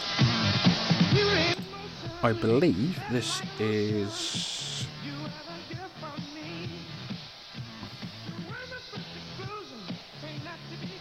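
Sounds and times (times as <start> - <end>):
1982 funk track with synth bass, punchy drums and sung vocals: 1.1 - 7.1, 8.2 - 10.9
speech: 2.2 - 4.6.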